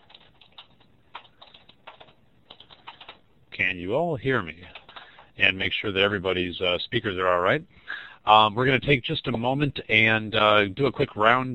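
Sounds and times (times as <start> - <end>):
typing on a computer keyboard into a chat window: 0.0 - 3.2, 4.6 - 5.4
speech: 3.6 - 4.8, 5.4 - 11.5.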